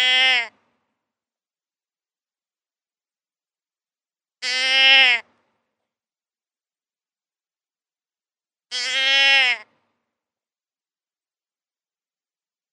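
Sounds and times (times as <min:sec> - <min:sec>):
deer bleating: 0:00.0 - 0:00.6, 0:04.4 - 0:05.3, 0:08.7 - 0:09.7.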